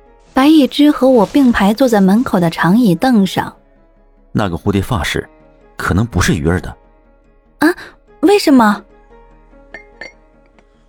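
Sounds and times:
speech: 0.5s - 3.6s, 4.4s - 6.8s, 7.6s - 8.9s
glass cup clinking: 9.7s - 10.2s.

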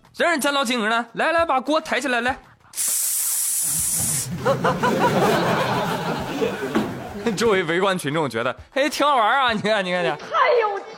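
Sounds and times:
speech: 0.2s - 2.5s, 4.4s - 10.7s
big water gun spraying water: 2.8s - 4.4s
laughter: 4.2s - 7.6s.

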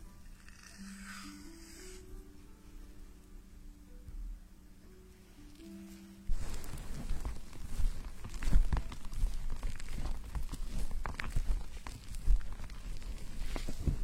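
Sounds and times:
fingers scratching through shampoo foam during a hair wash: 0.2s - 2.1s, 6.5s - 14.0s.

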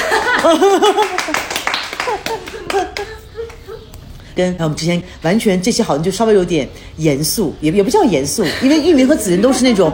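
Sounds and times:
laughter: 0.0s - 4.0s
applause: 0.2s - 3.1s
speech: 0.4s - 3.2s, 4.4s - 9.9s.

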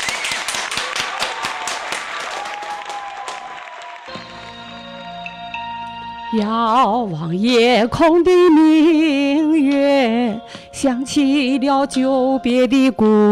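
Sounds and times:
audience applause: 0.0s - 4.6s
speech: 6.3s - 13.3s.

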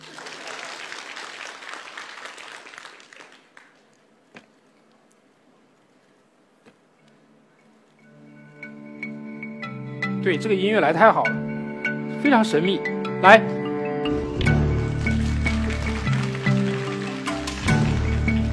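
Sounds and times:
audience applause: 0.0s - 4.2s, 14.4s - 18.5s
speech: 10.2s - 11.4s, 12.2s - 13.6s.

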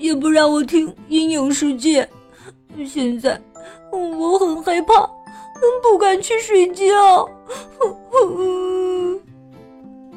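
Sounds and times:
speech: 0.1s - 8.7s
child crying as a little turtle: 3.9s - 9.2s.

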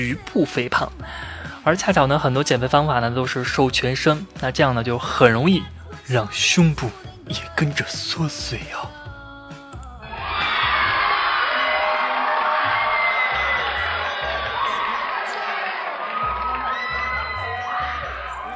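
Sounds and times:
speech: 0.0s - 9.0s
screaming sound effect: 10.0s - 18.5s.

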